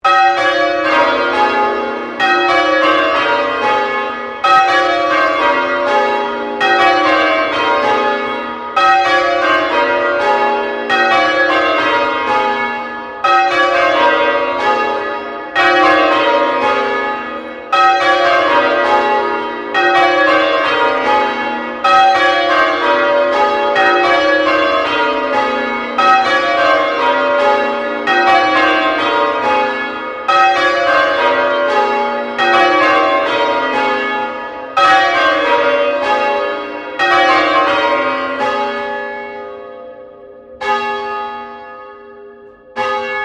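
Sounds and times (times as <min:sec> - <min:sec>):
St Paul's Cathedral Melbourne bells ringing a sequence: 0:00.0 - 0:43.2.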